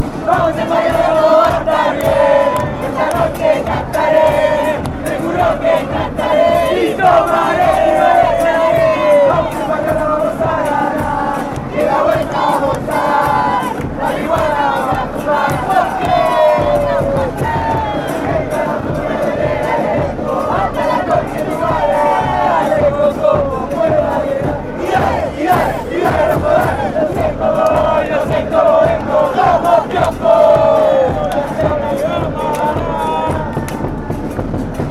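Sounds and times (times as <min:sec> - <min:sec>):
union members chanting: 0:00.0 - 0:34.8.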